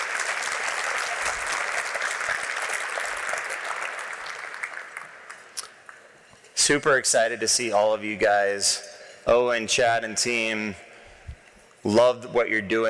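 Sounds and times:
audience applause: 0.0 - 5.5
speech: 6.7 - 10.8, 11.8 - 12.8.

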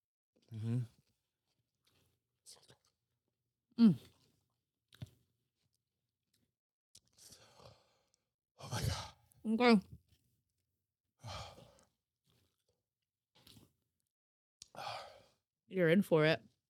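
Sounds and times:
person chewing food: 0.4 - 3.0, 3.9 - 8.3, 11.4 - 12.8, 13.4 - 13.8
speech: 0.5 - 1.0, 3.8 - 4.1, 9.5 - 10.0, 15.7 - 16.5.

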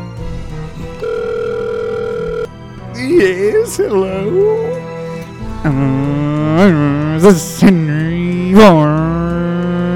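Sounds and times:
electronic telephone ring: 1.0 - 2.5
speech: 3.0 - 4.9, 5.6 - 9.0.

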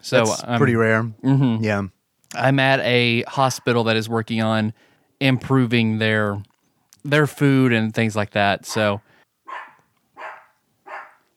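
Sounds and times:
speech: 0.0 - 9.1
dog barking: 9.5 - 11.3.

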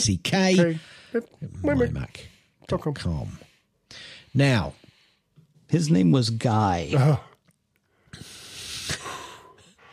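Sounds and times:
speech: 0.0 - 4.8, 5.7 - 7.3
deep breath: 3.4 - 5.5, 7.9 - 9.9.

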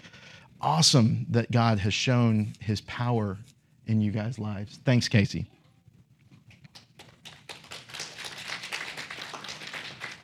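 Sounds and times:
speech: 0.6 - 5.6
audience applause: 7.0 - 10.2.

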